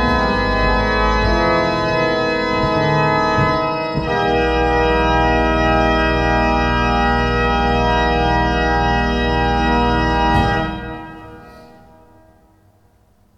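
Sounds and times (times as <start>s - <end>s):
organ improvisation: 0.0s - 12.4s.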